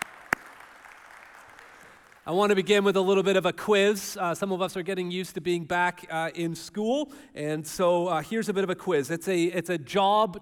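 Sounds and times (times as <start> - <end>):
audience clapping: 0.0 - 2.7
speech: 2.3 - 10.3.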